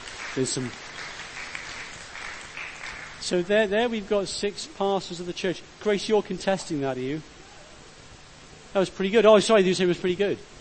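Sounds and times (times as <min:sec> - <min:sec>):
audience applause at a church gathering honoring six pastors: 0:00.0 - 0:03.3
speech: 0:00.4 - 0:01.0, 0:03.3 - 0:07.4, 0:08.7 - 0:10.5.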